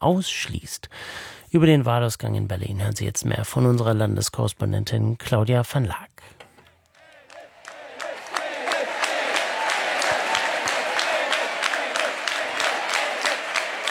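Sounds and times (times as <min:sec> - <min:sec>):
speech: 0:00.0 - 0:06.4
rhythmic clapping: 0:06.9 - 0:13.8
crowd chanting candidate's name at the Left party election-night gathering in Kreuzberg, Berlin: 0:07.0 - 0:13.8.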